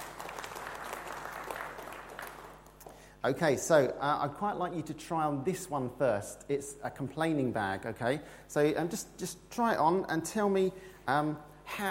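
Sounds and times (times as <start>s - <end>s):
small group clapping: 0.0s - 3.0s
speech: 3.2s - 11.8s.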